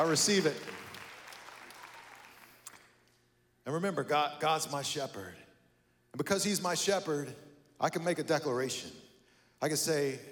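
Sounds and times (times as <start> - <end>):
speech: 0.0 - 0.8, 3.7 - 5.4, 6.1 - 9.0, 9.6 - 10.2
audience applause: 0.0 - 2.6.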